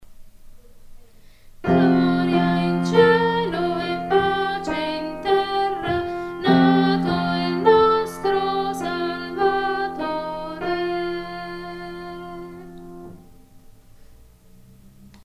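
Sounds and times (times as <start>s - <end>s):
contralto choir singing: 1.6s - 13.2s.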